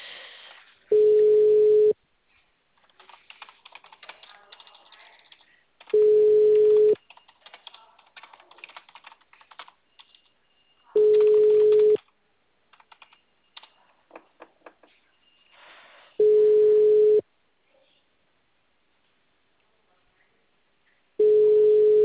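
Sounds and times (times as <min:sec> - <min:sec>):
phone ringing tone while a call connects: 0:00.9 - 0:02.0, 0:05.9 - 0:07.0, 0:11.0 - 0:12.0, 0:16.2 - 0:17.2, 0:21.2 - 0:22.0
soft keyboard typing: 0:02.8 - 0:10.4, 0:11.0 - 0:14.0.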